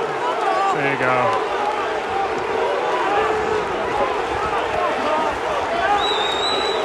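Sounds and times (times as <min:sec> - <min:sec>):
football crowd booing players: 0:00.0 - 0:06.8
speech: 0:00.8 - 0:01.5
whistle-like tones: 0:05.9 - 0:06.8.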